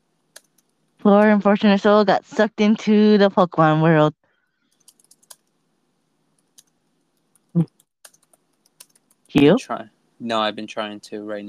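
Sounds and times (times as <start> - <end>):
computer keyboard typing while writing an email: 0.3 - 0.7, 4.8 - 5.5, 8.0 - 9.3
speech: 1.0 - 4.2, 7.6 - 7.8, 9.3 - 11.4.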